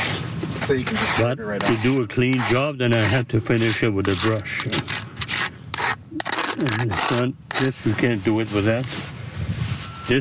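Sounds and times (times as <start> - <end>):
plastic snow scraper scraping rough cement-crusted granite headstone base in a cemetery: 0.0 - 8.1
speech: 0.7 - 5.0, 6.6 - 9.1, 10.1 - 10.2.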